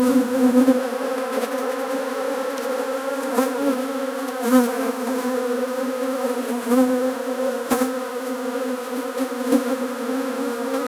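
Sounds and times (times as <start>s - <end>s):
swarm of bees: 0.0s - 10.9s.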